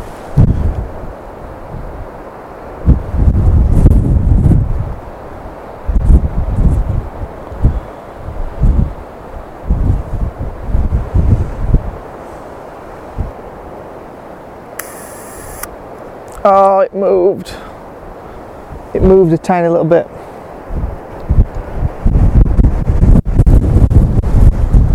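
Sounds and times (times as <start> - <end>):
strong wind buffeting the microphone: 0.0 - 13.8, 20.2 - 24.9
speech: 16.4 - 17.6, 19.0 - 20.2.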